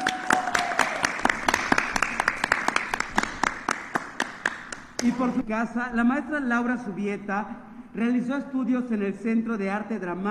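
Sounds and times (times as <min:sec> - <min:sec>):
audience applause: 0:00.0 - 0:05.1
speech: 0:05.0 - 0:10.2.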